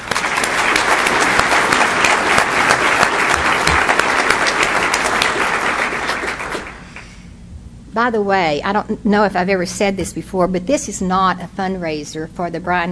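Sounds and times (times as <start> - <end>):
audience applause: 0.0 - 7.0
speech: 8.0 - 12.8.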